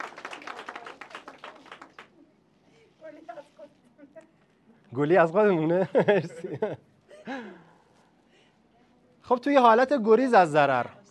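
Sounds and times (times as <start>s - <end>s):
audience applause: 0.0s - 2.1s
speech: 4.9s - 6.9s, 9.3s - 11.0s
laughter: 5.7s - 7.7s.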